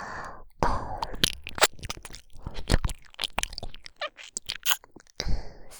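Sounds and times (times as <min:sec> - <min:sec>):
soothing ear licking sounds: 0:00.7 - 0:05.2.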